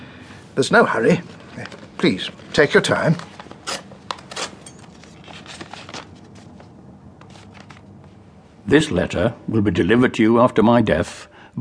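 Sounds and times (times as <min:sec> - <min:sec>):
speech: 0:00.6 - 0:03.3, 0:08.7 - 0:11.5
paper knife slitting open an envelope: 0:01.6 - 0:06.6.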